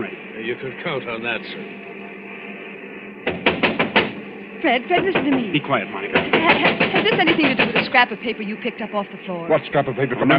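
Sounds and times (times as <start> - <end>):
quiet room hum: 0.0 - 10.3
speech: 0.5 - 1.9, 4.6 - 10.3
knuckles rapping on a wooden door: 3.3 - 4.2, 6.2 - 7.9.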